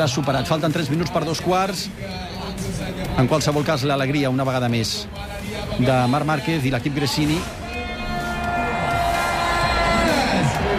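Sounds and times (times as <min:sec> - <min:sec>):
speech: 0:00.0 - 0:07.6
crowd shouting a rider's name: 0:07.3 - 0:10.7.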